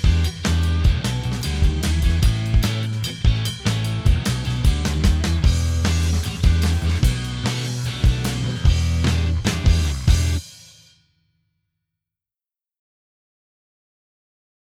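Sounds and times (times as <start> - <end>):
backing track without keyboards: 0.0 - 10.5.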